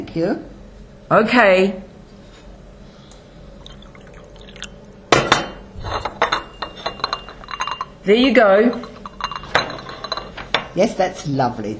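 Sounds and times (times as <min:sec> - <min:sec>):
speech: 0:00.2 - 0:01.9, 0:08.0 - 0:08.9, 0:10.8 - 0:11.7
china cup of tea clinking against saucer and spoon: 0:05.3 - 0:08.0, 0:08.6 - 0:10.4.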